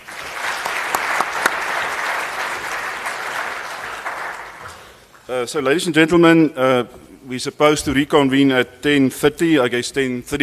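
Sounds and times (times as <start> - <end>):
audience applause: 0.0 - 5.0
speech: 5.3 - 10.4.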